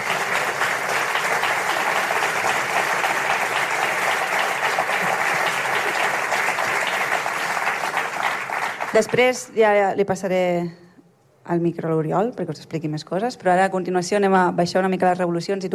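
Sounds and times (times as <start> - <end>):
audience applause: 0.0 - 9.4
speech: 9.0 - 10.8, 11.5 - 15.7.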